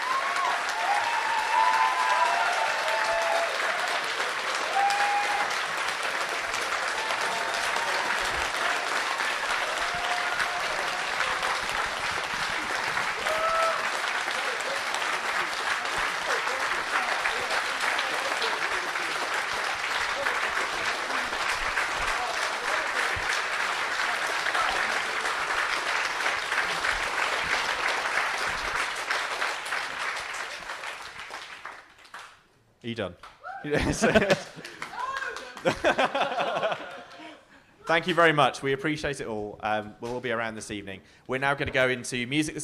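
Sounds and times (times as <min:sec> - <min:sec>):
whoops: 0:00.0 - 0:04.0, 0:04.6 - 0:05.6, 0:06.9 - 0:09.0, 0:09.6 - 0:11.6, 0:13.1 - 0:14.0, 0:33.4 - 0:33.8, 0:34.8 - 0:35.6
audience applause: 0:00.0 - 0:32.4, 0:33.7 - 0:37.5
speech: 0:32.9 - 0:34.4, 0:35.8 - 0:36.6, 0:37.9 - 0:42.6
laughter: 0:33.7 - 0:37.6.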